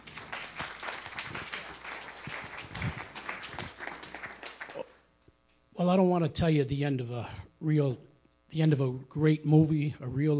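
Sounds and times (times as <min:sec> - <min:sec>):
audience applause: 0:00.0 - 0:05.0
speech: 0:05.8 - 0:10.3.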